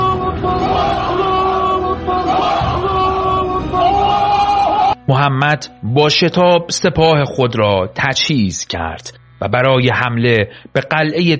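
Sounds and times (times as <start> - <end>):
crowd shouting Allahu Akbar battle cry: 0.0 - 5.0
speech: 5.1 - 11.3.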